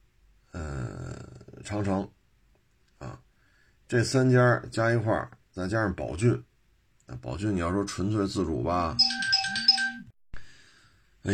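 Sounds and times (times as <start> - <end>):
speech: 1.6 - 2.2, 3.0 - 3.3, 3.9 - 6.5, 7.1 - 9.2
phone ringtone of an incoming call: 9.0 - 10.2.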